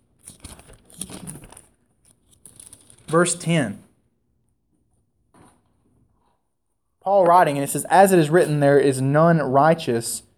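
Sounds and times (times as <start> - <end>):
thin Bible pages flipped toward Romans: 0.2 - 3.1
speech: 3.1 - 3.8, 7.1 - 10.3.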